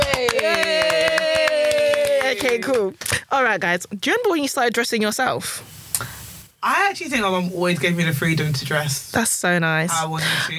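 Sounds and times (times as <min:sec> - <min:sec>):
hand clapping: 0:00.0 - 0:03.2
speech: 0:02.4 - 0:10.5.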